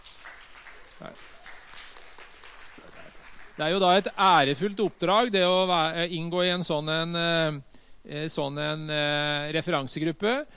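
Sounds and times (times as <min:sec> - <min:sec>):
audience clapping: 0:00.0 - 0:05.4
speech: 0:01.0 - 0:01.3, 0:03.6 - 0:10.5.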